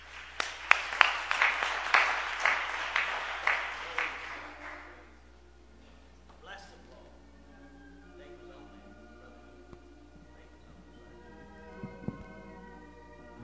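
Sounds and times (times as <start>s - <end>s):
crowd clapping: 0.0s - 5.2s.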